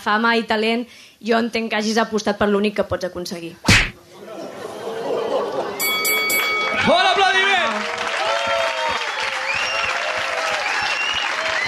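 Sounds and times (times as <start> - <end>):
speech: 0.0 - 3.9
laughter: 4.0 - 6.9
loud audience applause: 6.5 - 11.6.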